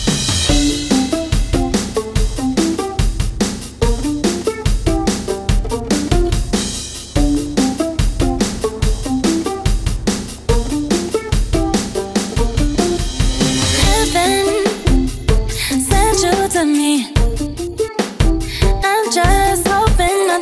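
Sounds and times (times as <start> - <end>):
rock remix: 0.1 - 20.4.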